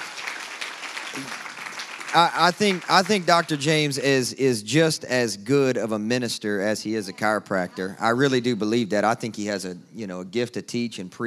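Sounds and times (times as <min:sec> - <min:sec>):
audience applause: 0:00.0 - 0:04.0
speech: 0:01.2 - 0:01.4, 0:02.1 - 0:11.2.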